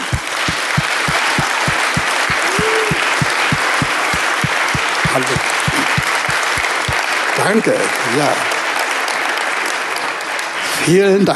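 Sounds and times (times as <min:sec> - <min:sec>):
steady low thumping beat: 0:00.0 - 0:07.0
audience applause: 0:00.0 - 0:11.3
person whooping: 0:01.2 - 0:03.8
speech: 0:05.2 - 0:05.5, 0:07.4 - 0:08.5, 0:10.9 - 0:11.3.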